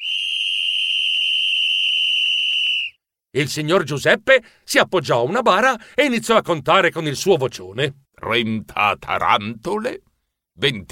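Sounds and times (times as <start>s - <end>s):
shrill whistle being blown: 0.0s - 3.0s
speech: 3.3s - 10.8s.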